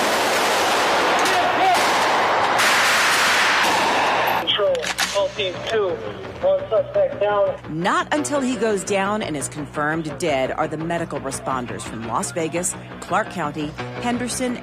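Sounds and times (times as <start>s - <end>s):
gunfire as police officers in Las Vegas shoot a gunman: 0.0s - 5.3s
speech: 5.4s - 14.6s.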